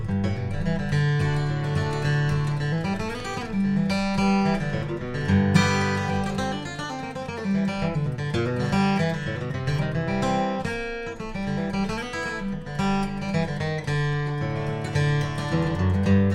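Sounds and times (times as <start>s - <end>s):
Martin D-18 steel-string flattop acoustic guitar: 0.0s - 16.3s.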